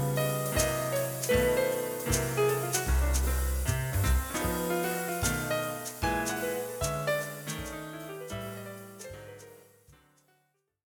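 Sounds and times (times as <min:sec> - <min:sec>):
jazz flute: 0:00.0 - 0:09.7.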